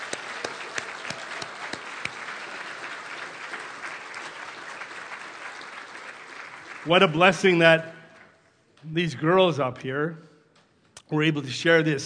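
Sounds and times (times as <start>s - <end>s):
audience applause: 0.0s - 8.2s
speech: 6.8s - 8.0s, 8.8s - 10.3s, 11.1s - 12.0s.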